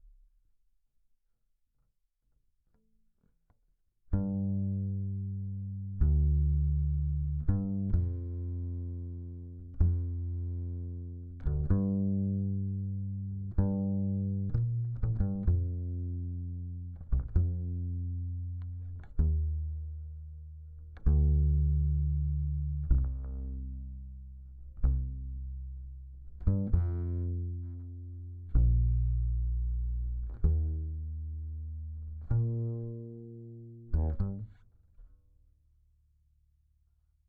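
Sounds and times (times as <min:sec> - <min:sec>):
bass guitar recorded by direct input: 0:04.1 - 0:35.2.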